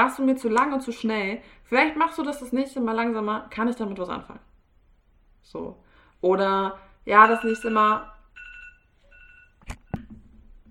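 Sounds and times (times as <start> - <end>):
speech: 0.0 - 4.5, 5.4 - 8.1
alarm clock ringing: 7.1 - 9.6.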